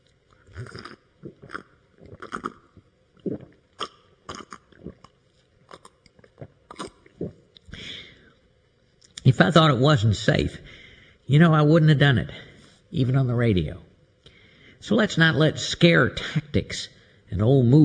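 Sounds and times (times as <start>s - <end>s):
person drinking a glass of tap water: 0.0s - 7.8s
speech: 9.4s - 10.7s, 11.3s - 13.9s, 14.8s - 17.8s.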